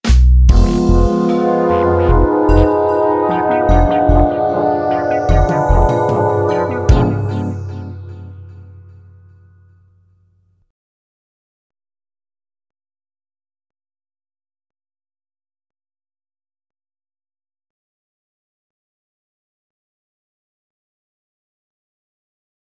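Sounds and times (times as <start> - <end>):
jingle: 0.5 - 9.4.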